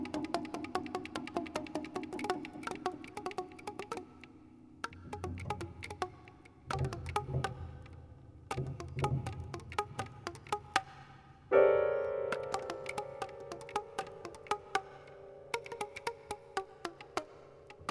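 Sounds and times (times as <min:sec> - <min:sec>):
piano: 0:00.0 - 0:17.8.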